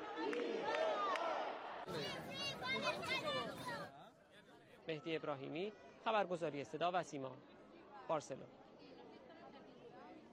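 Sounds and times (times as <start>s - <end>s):
crowd roaring and shouting: 0.0s - 3.9s
speech: 4.9s - 7.5s, 8.1s - 8.6s.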